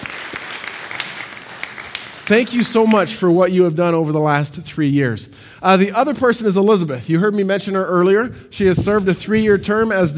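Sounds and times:
audience applause: 0.0 - 3.0
speech: 2.3 - 10.1.

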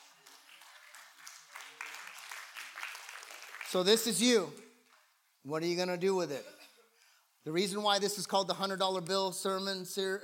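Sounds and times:
audience clapping: 0.0 - 5.2
speech: 3.7 - 4.6, 5.4 - 6.6, 7.4 - 10.2.

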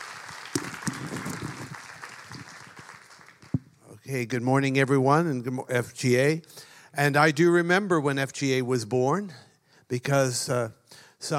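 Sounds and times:
audience applause welcoming a speaker: 0.0 - 3.6
speech: 4.1 - 11.3.

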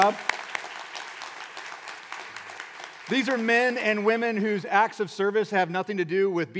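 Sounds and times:
speech: 0.0 - 0.3, 3.1 - 6.5
audience round of applause: 0.0 - 4.4.

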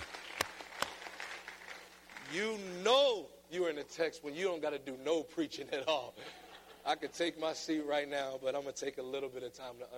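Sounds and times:
audience hand clapping: 0.0 - 2.4
speech: 2.3 - 9.9.

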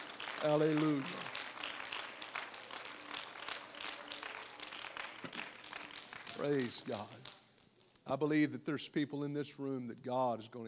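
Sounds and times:
audience clapping hands: 0.0 - 7.5
speech: 0.4 - 1.3, 6.4 - 7.4, 8.1 - 10.6.

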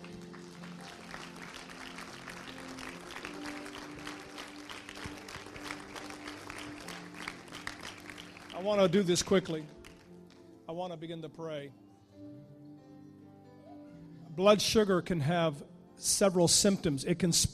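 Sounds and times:
audience clapping hands: 0.0 - 10.5
speech: 8.6 - 9.8, 10.8 - 12.3, 14.4 - 17.5.

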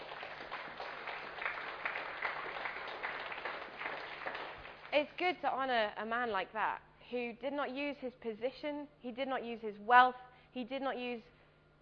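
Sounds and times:
audience clapping: 0.0 - 5.0
speech: 4.9 - 11.3.

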